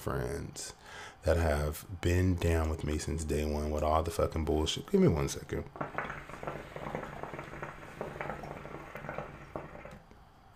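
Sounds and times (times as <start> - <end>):
speech: 0.0 - 7.0
water bubbling from a hookah being smoked: 5.4 - 10.2.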